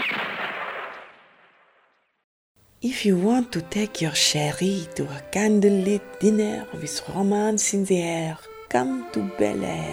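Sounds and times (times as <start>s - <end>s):
gunshot in a comedy advert: 0.0s - 2.2s
speech: 2.8s - 9.9s.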